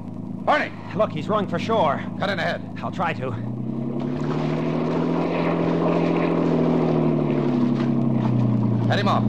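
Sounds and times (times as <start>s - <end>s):
motorboat engine racing across water: 0.0s - 9.2s
speech: 0.5s - 3.6s, 8.9s - 9.2s
faint rush of water: 4.0s - 9.2s.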